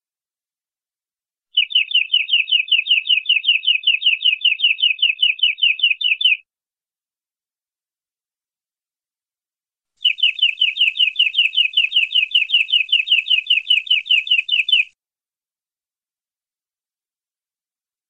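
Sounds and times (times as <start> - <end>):
canary singing long-duration rolling trill: 1.6 - 6.4, 10.0 - 14.9.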